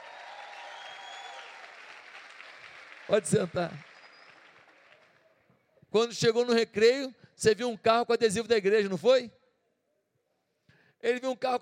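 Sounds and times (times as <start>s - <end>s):
audience clapping: 0.0s - 5.5s
speech: 3.1s - 3.9s, 5.9s - 9.4s, 11.0s - 11.6s.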